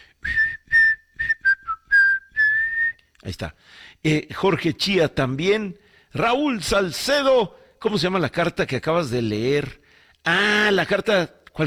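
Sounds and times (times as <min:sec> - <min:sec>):
person whistling: 0:00.2 - 0:03.0
speech: 0:03.2 - 0:11.6.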